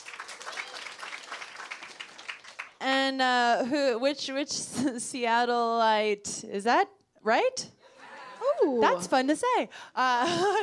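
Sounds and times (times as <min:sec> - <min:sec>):
audience applause: 0:00.0 - 0:02.8
speech: 0:03.1 - 0:07.8, 0:08.6 - 0:10.6.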